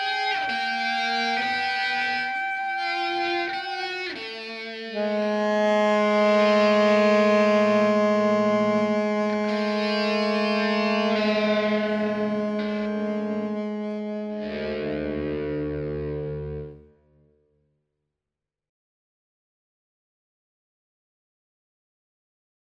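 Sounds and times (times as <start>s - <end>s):
tarogato: 0.0s - 16.8s
guitar: 0.0s - 17.4s.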